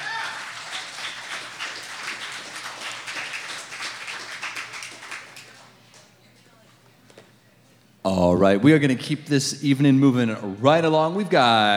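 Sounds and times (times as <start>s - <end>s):
open mic audience applause: 0.0s - 6.1s
speech: 8.1s - 11.7s.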